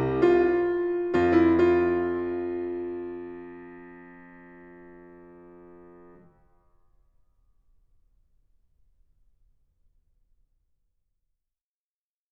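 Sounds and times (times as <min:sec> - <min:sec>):
keyboard fugue in F minor: 0:00.0 - 0:06.2.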